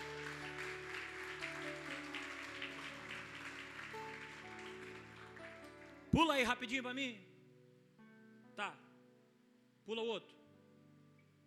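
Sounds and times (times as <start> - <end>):
audience applauding: 0.0 - 6.5
speech: 6.2 - 7.3, 8.6 - 8.8, 9.9 - 10.4.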